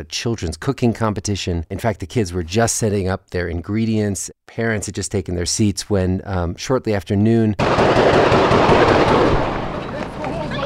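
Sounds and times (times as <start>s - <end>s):
speech: 0.0s - 9.0s
AK-47 rifle fire sound effect: 7.6s - 10.2s.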